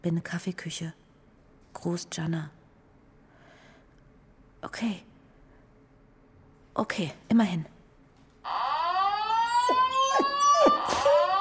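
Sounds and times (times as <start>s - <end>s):
speech: 0.0s - 1.0s, 1.8s - 2.6s, 4.6s - 5.1s, 6.8s - 7.8s
siren wailing: 8.5s - 11.3s.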